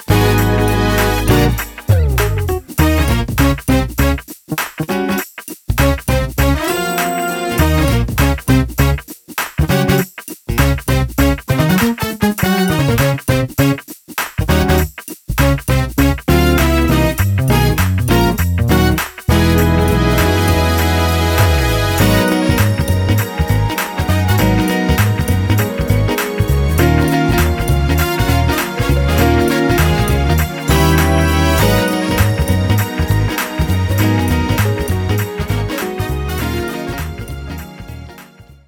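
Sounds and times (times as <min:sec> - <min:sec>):
drumless jam music: 0:00.0 - 0:38.3.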